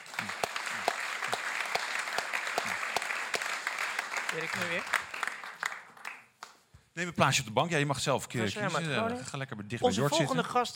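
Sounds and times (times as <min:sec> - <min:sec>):
audience applause: 0:00.0 - 0:06.4
speech: 0:04.3 - 0:05.0, 0:07.0 - 0:10.7.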